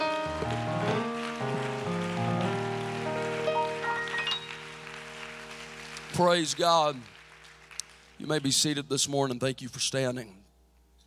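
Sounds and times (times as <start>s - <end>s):
sustained keyboard or organ chords: 0.0s - 6.9s
audience clapping steadily: 0.0s - 8.9s
speech: 6.2s - 7.2s, 8.2s - 10.4s.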